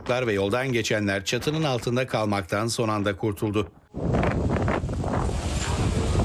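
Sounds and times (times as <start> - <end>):
speech: 0.1 - 4.5
strong storm wind in Istanbul's Esenler district buffeting the microphone: 3.8 - 6.2.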